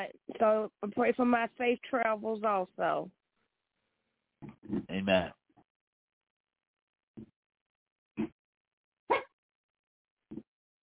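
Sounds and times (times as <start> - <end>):
speech: 0.0 - 3.2, 4.4 - 5.4
dog barking: 9.1 - 9.3.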